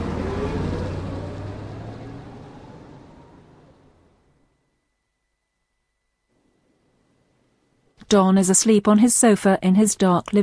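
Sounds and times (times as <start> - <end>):
taxi cab engine rumble pulling away: 0.0 - 4.4
speech: 8.1 - 10.4.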